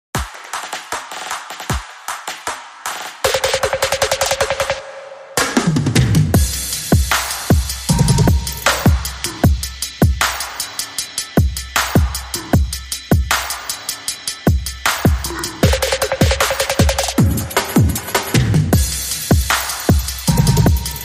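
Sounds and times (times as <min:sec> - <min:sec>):
drums: 0:00.1 - 0:21.0.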